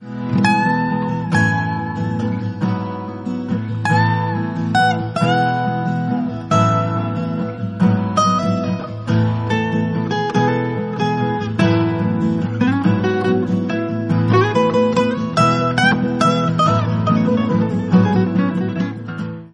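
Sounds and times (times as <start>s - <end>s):
romantic music: 0.0s - 19.1s.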